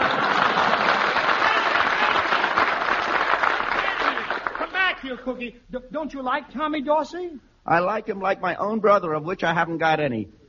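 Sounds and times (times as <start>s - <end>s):
studio audience applause: 0.0s - 5.0s
speech: 5.2s - 10.4s.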